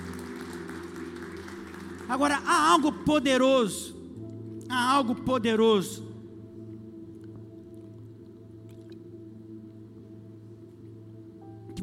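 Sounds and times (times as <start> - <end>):
audience applause: 0.0 - 2.9
speech: 2.1 - 4.0, 4.7 - 6.1.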